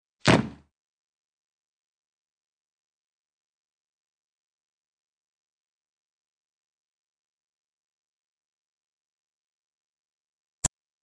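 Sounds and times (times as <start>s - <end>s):
fight sounds: 0.2s - 0.6s.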